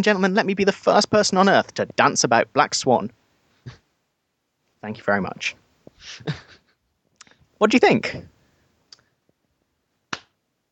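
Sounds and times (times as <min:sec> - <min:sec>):
speech: 0:00.0 - 0:03.8, 0:04.8 - 0:06.6, 0:07.6 - 0:08.3
single hand clap: 0:10.1 - 0:10.4.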